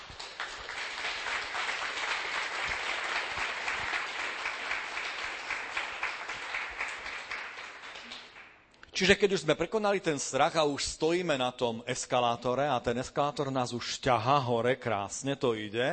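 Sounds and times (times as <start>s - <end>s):
audience applause: 0.0s - 8.5s
speech: 9.0s - 15.9s.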